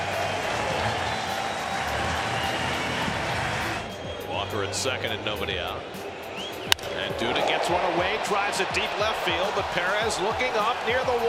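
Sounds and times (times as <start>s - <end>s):
ballpark crowd applauding: 0.0s - 4.0s, 7.0s - 11.2s
ballpark crowd noise: 0.0s - 11.2s
speech: 4.6s - 6.0s, 7.2s - 11.2s.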